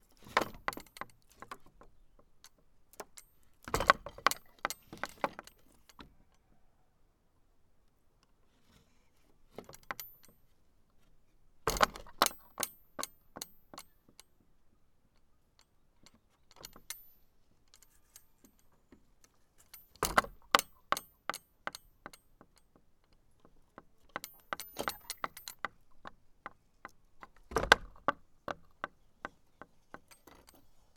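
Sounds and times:
wooden gate: 0.1s - 6.6s, 11.6s - 14.2s, 17.8s - 30.7s.

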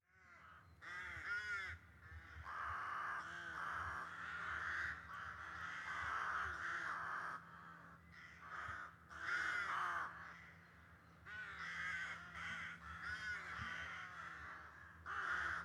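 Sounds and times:
crow cawing: 0.1s - 15.6s.

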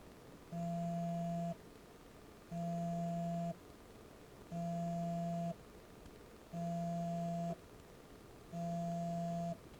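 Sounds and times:
mobile phone vibrating: 0.5s - 1.6s, 2.5s - 3.6s, 4.5s - 5.6s, 6.5s - 7.6s, 8.5s - 9.6s.

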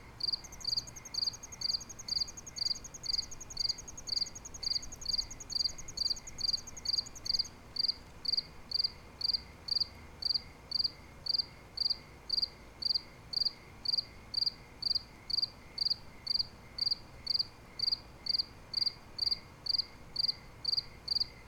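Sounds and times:
crickets chirping in rapid high pulses: 0.0s - 21.4s.

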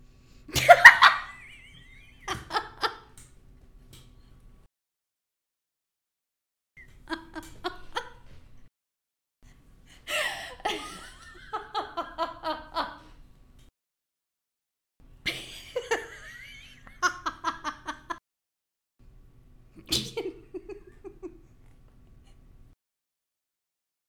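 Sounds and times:
person laughing: 0.5s - 3.2s, 6.8s - 8.4s, 10.0s - 13.1s, 15.3s - 18.2s, 19.8s - 21.6s.

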